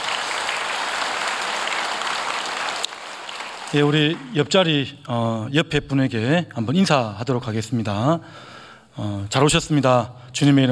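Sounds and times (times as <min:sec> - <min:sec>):
audience applauding: 0:00.0 - 0:04.7
speech: 0:03.7 - 0:10.6.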